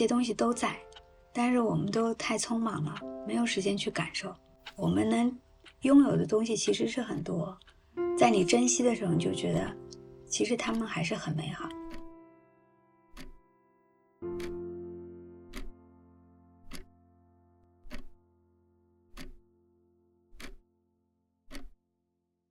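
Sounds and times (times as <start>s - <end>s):
speech: 0.0s - 11.8s
faint clock ticking: 0.0s - 12.2s, 13.1s - 13.5s, 14.2s - 14.8s, 15.5s - 15.8s, 16.6s - 17.0s, 17.8s - 18.2s, 19.1s - 19.5s, 20.4s - 20.6s, 21.5s - 21.8s.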